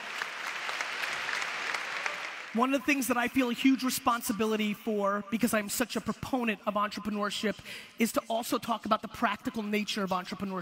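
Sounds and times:
audience applause: 0.0s - 2.6s
speech: 2.6s - 10.6s.

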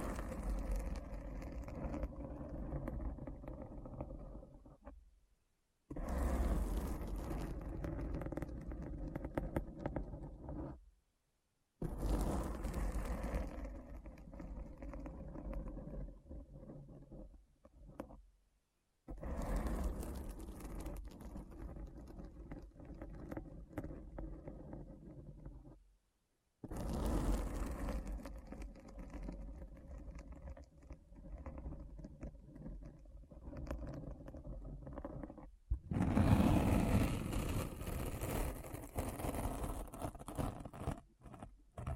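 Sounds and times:
deep scratchy rumble: 0.0s - 5.0s, 6.0s - 10.8s, 11.8s - 18.2s, 19.1s - 25.8s, 26.7s - 41.9s.

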